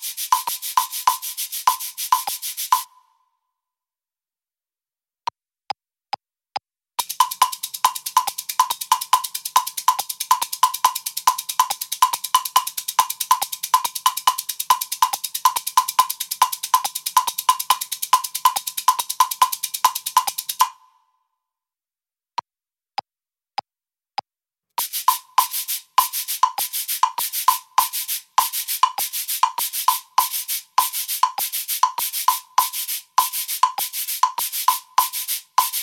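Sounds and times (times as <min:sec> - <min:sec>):
cabasa foot pedal shaker: 0:00.0 - 0:02.9, 0:07.0 - 0:20.8, 0:24.8 - 0:35.8.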